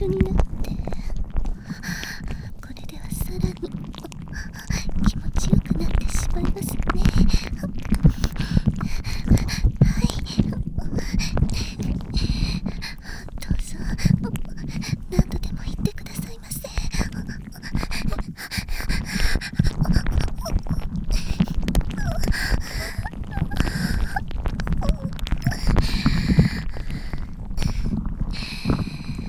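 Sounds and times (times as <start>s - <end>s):
whispering inside the head: 0.0s - 1.1s, 2.6s - 8.2s, 9.2s - 12.2s, 13.4s - 19.1s, 19.8s - 21.4s
ear tentacle sounds: 0.0s - 29.2s.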